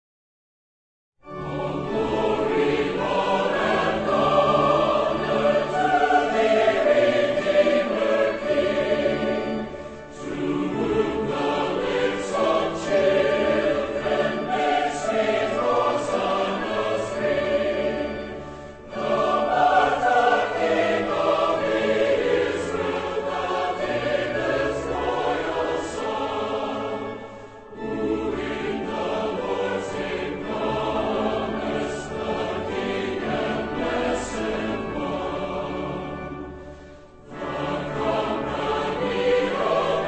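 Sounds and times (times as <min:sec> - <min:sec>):
choir singing a hymn: 0:01.2 - 0:40.0.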